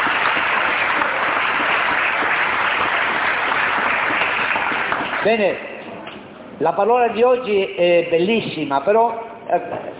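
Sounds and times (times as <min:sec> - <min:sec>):
crowd applause: 0:00.0 - 0:05.3
speech: 0:05.2 - 0:05.7, 0:06.6 - 0:09.9.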